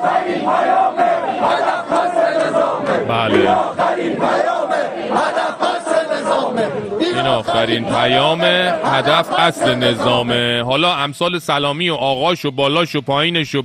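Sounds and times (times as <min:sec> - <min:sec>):
large protest crowd chanting slogans: 0:00.0 - 0:10.5
speech: 0:07.2 - 0:13.6.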